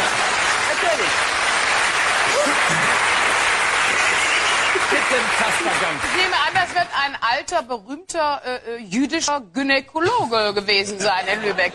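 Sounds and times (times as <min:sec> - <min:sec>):
audience applause: 0:00.0 - 0:07.1
speech: 0:05.2 - 0:11.7.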